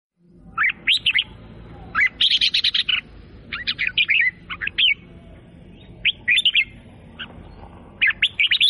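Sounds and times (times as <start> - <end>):
sooty-headed bulbul singing bubbly chirping phrases: 0.2 - 8.6.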